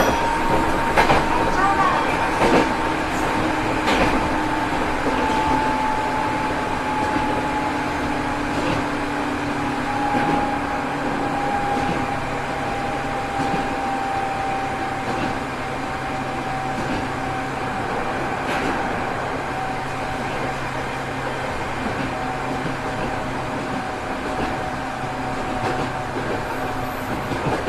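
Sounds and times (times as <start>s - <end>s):
205 series train on the Nambu branch line: 0.0s - 27.6s.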